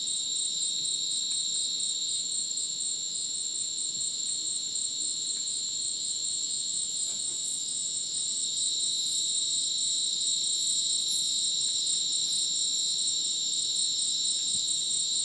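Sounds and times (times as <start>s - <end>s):
crickets trilling chorus in the rainforest in Bolivia: 0.0s - 15.2s.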